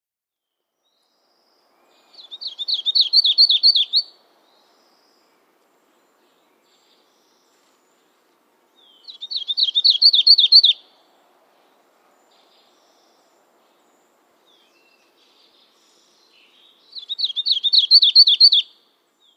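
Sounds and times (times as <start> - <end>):
painted redstart chip calls: 2.2 - 4.1, 9.0 - 10.8, 16.9 - 18.7.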